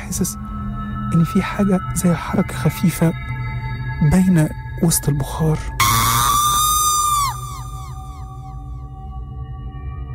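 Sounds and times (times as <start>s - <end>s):
low rumbling drone: 0.0s - 10.1s
speech: 0.1s - 0.5s, 1.1s - 3.3s, 4.0s - 5.8s
girl screaming with repeats: 5.8s - 8.6s.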